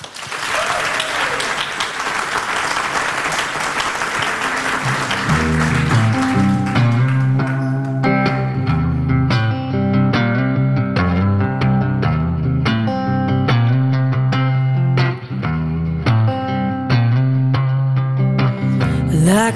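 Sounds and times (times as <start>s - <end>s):
audience applause: 0.0s - 8.6s
tonal music with sustained notes: 4.5s - 19.5s.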